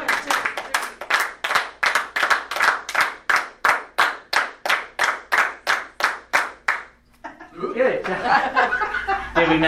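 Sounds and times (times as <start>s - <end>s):
group hand clapping: 0.0s - 7.0s
laughter: 7.2s - 9.6s.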